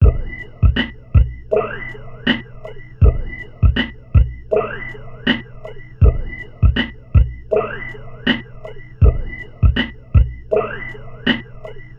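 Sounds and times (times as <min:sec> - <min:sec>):
subtle music loop: 0:00.0 - 0:11.9.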